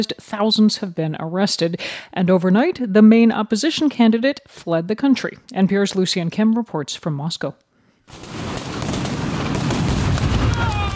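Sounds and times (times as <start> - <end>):
speech: 0.0 - 8.4
flashbang grenades exploding in Minsk at night: 8.1 - 10.9.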